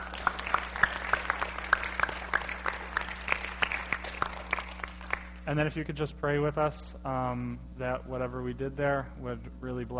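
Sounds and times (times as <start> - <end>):
audience hand clapping: 0.0 - 5.5
speech: 5.5 - 9.9.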